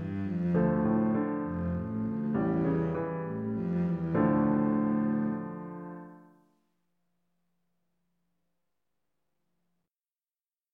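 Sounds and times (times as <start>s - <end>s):
double bass playing: 0.0s - 5.7s.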